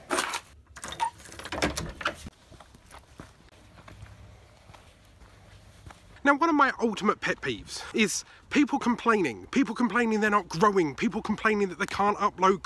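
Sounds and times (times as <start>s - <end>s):
footsteps of someone walking: 2.2s - 7.5s
speech: 6.3s - 12.6s.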